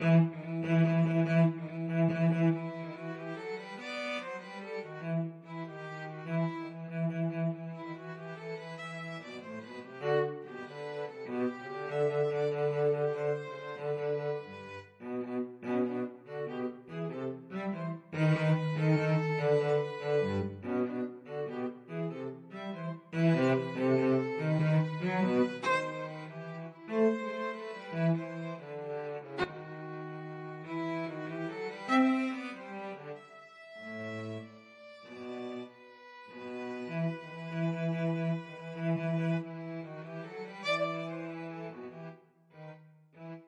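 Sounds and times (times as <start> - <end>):
violin and cello duet: 0.0 - 43.4.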